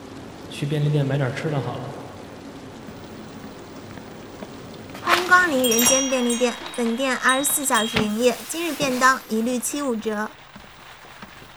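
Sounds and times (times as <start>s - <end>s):
steady rain: 0.0s - 5.8s, 8.7s - 11.5s
speech: 0.6s - 2.0s, 5.4s - 10.4s.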